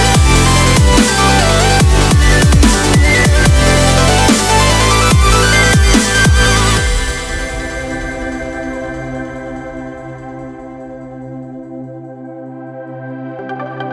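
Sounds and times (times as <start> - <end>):
dubstep remix: 0.0 - 10.0.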